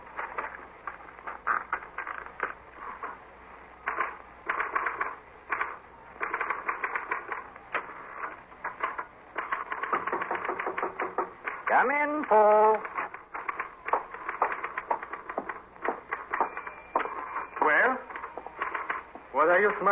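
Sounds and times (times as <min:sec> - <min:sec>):
typing on a typewriter: 0:03.8 - 0:19.9
speech: 0:12.3 - 0:12.6, 0:19.7 - 0:19.9.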